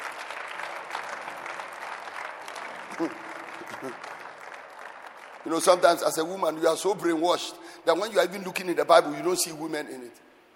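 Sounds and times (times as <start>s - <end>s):
audience clapping: 0.0s - 6.7s
speech: 3.0s - 4.2s, 5.4s - 10.3s.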